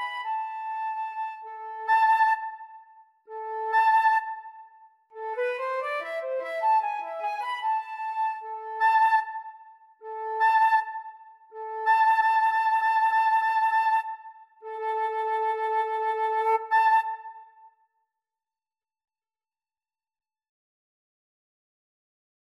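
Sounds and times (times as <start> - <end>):
flute and cello duet: 0.0 - 17.6.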